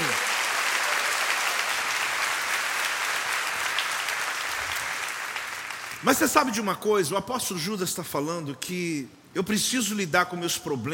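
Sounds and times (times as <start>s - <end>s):
audience applause: 0.0s - 6.0s
speech: 6.0s - 10.9s.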